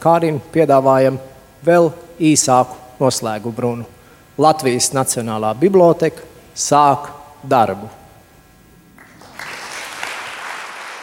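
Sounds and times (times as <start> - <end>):
speech: 0.0 - 8.0
applause: 9.0 - 11.0.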